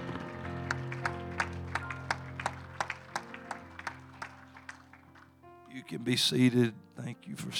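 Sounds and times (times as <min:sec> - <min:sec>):
audience clapping: 0:00.0 - 0:05.5
speech: 0:05.9 - 0:07.5.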